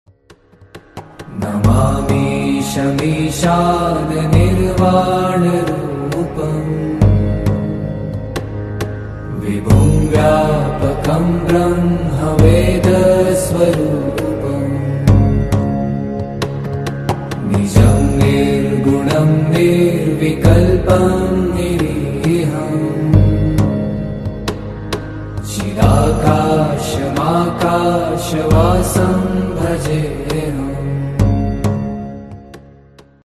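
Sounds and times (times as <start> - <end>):
devotional ringtone music: 1.3 - 33.1.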